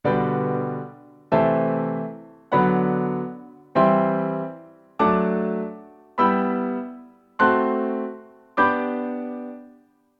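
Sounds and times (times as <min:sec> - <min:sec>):
piano first inversion chords in G major: 0:00.0 - 0:10.1.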